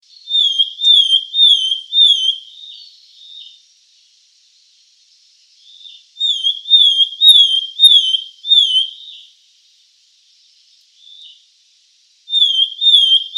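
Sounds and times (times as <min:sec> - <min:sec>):
sultan tit Melanochlora sultanea gayeti calling with slurred whistles: 0:00.3 - 0:02.4, 0:06.2 - 0:09.1, 0:12.3 - 0:13.3.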